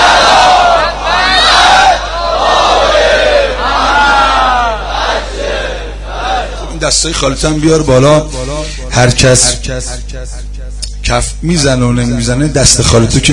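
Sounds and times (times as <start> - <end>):
large crowd at a religious gathering reciting salawat in unison: 0.0 - 6.7
steady low hum: 0.0 - 13.3
speech: 6.9 - 10.5, 11.1 - 13.3.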